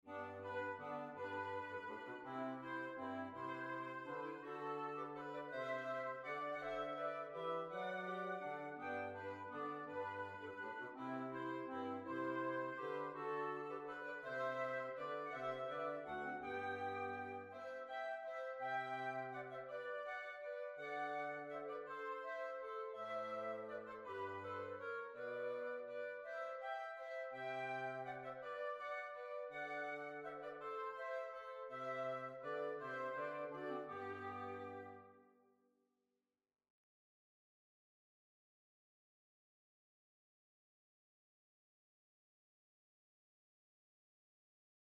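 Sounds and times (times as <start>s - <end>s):
waltz music: 0.0s - 35.1s.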